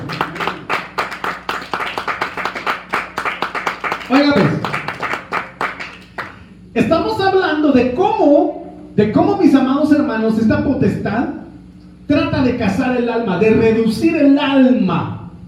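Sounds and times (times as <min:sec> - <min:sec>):
audience clapping hands: 0:00.0 - 0:06.5
speech: 0:04.1 - 0:04.6, 0:06.8 - 0:11.4, 0:12.1 - 0:15.2.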